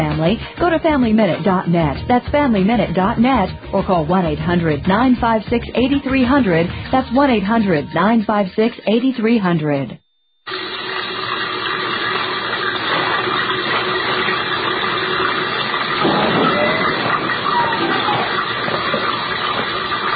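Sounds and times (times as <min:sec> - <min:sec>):
speech: 0:00.2 - 0:10.7
water running from a sink tap left on: 0:10.5 - 0:20.1.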